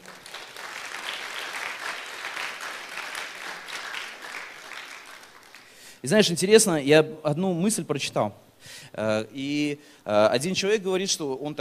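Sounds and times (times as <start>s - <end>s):
audience applause: 0.0s - 5.8s
speech: 6.0s - 11.5s.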